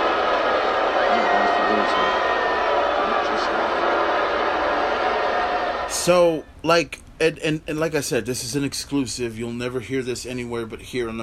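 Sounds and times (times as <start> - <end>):
high shouts: 0.0 - 6.4
large arena crowd cheering: 0.0 - 6.4
speech: 6.1 - 11.2.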